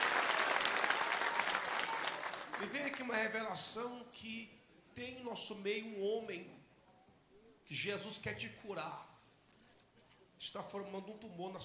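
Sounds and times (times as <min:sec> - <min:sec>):
church congregation applauding for Jesus: 0:00.0 - 0:03.4
speech: 0:02.6 - 0:06.6, 0:07.7 - 0:09.1, 0:10.4 - 0:11.6.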